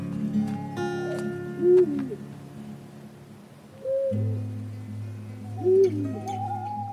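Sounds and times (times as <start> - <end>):
owl hooting at night: 0.3 - 2.2, 3.7 - 4.6, 5.3 - 6.8.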